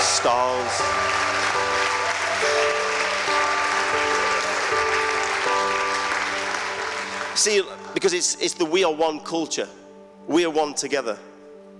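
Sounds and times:
audience applause: 0.0s - 7.8s
keyboard chords: 0.0s - 11.7s
speech: 0.2s - 1.1s, 7.4s - 11.3s.

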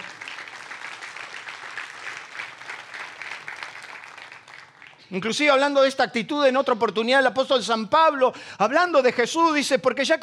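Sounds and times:
audience applause: 0.0s - 5.1s
speech: 5.1s - 10.2s.

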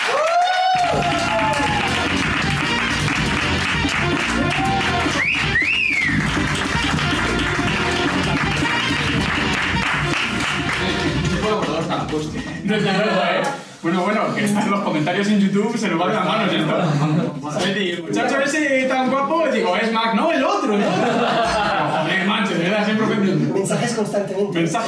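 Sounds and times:
audience applause: 0.0s - 11.2s
audience whistling: 5.1s - 6.2s
laughter: 12.4s - 13.6s, 16.5s - 17.4s, 20.6s - 22.6s
speech: 14.0s - 24.8s.

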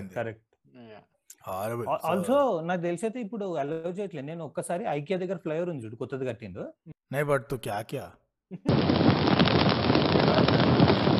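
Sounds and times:
speech: 0.0s - 9.2s
heavy rain: 8.7s - 11.1s
thunder during heavy rain: 8.7s - 11.1s.

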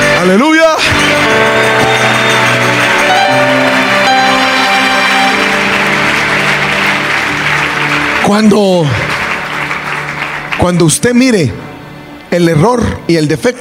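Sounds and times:
speech: 0.2s - 0.6s, 8.3s - 9.1s, 10.6s - 11.6s, 12.3s - 13.6s
audience applause: 0.8s - 11.2s.

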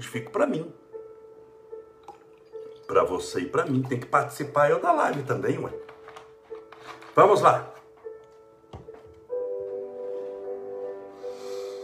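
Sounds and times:
speech: 0.0s - 0.8s, 2.9s - 5.9s, 6.9s - 7.8s
drinking water poured into a glass: 2.0s - 4.2s.

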